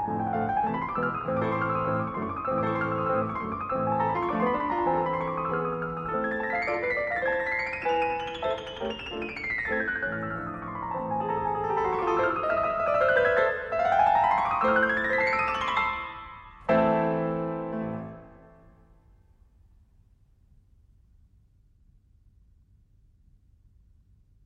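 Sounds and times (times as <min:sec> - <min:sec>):
piano piece: 0:00.0 - 0:19.2.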